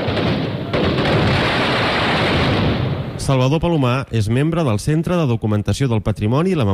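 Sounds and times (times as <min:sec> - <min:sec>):
gunpowder firecracker explosions: 0:00.0 - 0:03.7
speech: 0:03.3 - 0:06.7.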